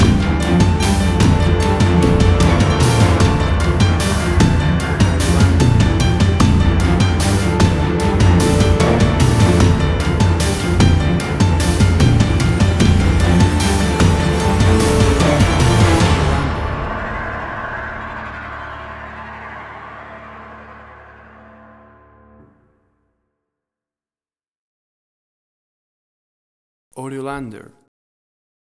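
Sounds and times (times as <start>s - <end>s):
action trailer music cue: 0.0s - 22.8s.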